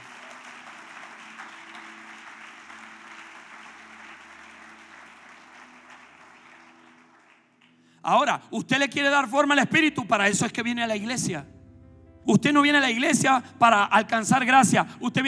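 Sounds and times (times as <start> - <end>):
audience applause: 0.0 - 7.9
speech: 8.0 - 11.5, 12.2 - 15.2.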